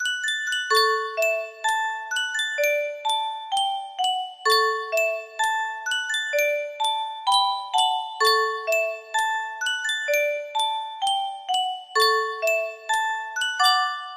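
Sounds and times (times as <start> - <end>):
Yunsheng music box melody: 0.0 - 14.1.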